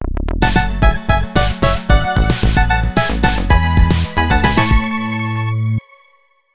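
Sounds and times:
jingle: 0:00.4 - 0:06.0.

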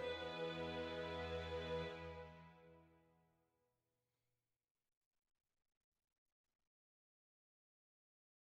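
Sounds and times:
sad soft music: 0:00.0 - 0:02.9.

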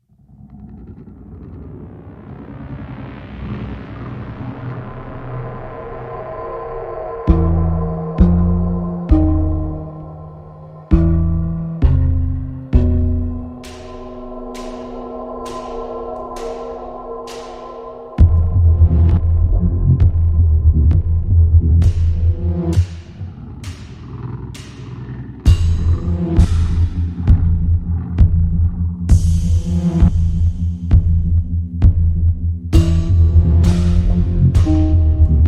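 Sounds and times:
boss battle ambient music: 0:06.8 - 0:35.4.

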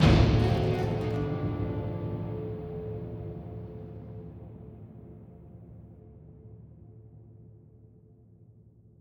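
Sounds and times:
palace end tension stinger: 0:00.0 - 0:05.4.

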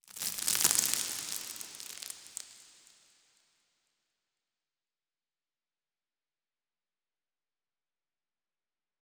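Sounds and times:
rock debris in environment: 0:00.0 - 0:03.1.

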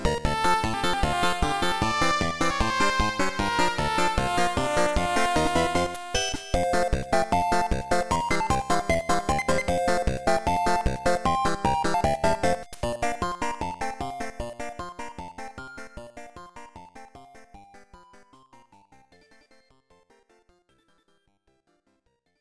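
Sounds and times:
percussion: 0:00.0 - 0:13.6.

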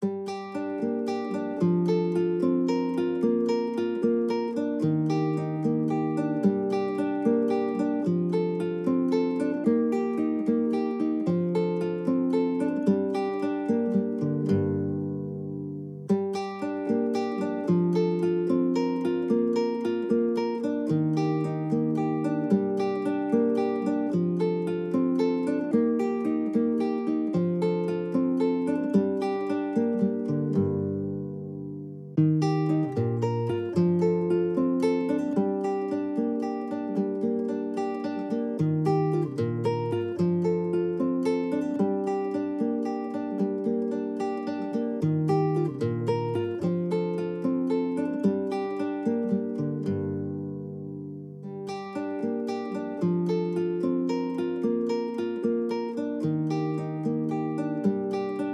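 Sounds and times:
lute playing: 0:00.0 - 0:58.5.

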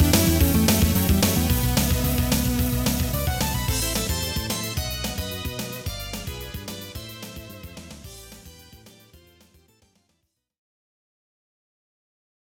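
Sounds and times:
monster dance music: 0:00.0 - 0:09.6.

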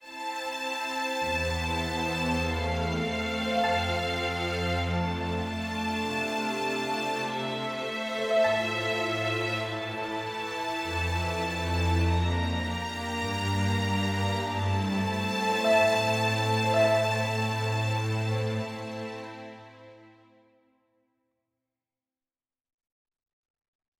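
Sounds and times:
loud adventure music: 0:01.0 - 0:19.7.

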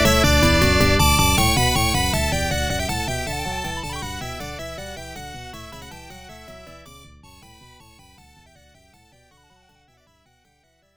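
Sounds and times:
main background music: 0:00.0 - 0:06.8.

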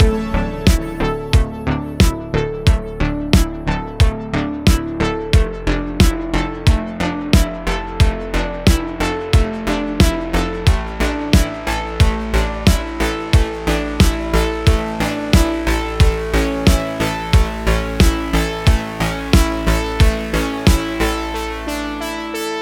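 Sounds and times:
music outro: 0:00.0 - 0:22.4.

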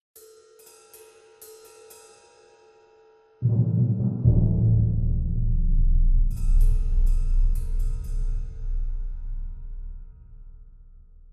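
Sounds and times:
ambient music: 0:03.4 - 0:11.3.

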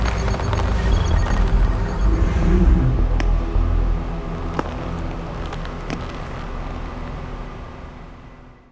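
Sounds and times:
arrival sound effect music: 0:00.0 - 0:05.3.

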